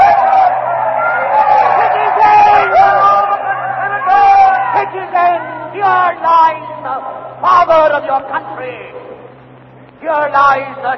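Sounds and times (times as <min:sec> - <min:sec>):
frenzied crowd shouting: 0:00.0 - 0:07.4
speech: 0:10.1 - 0:10.9.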